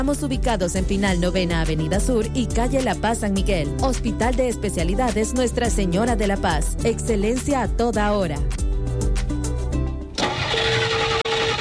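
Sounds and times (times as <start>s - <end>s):
speech: 0.0s - 9.1s
car engine cranking but failing to start: 10.2s - 11.5s.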